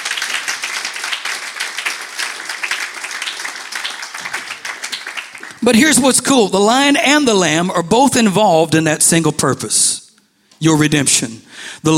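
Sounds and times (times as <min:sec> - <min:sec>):
crowd clapping hands: 0:00.0 - 0:06.2
speech: 0:05.6 - 0:10.0, 0:10.6 - 0:11.9.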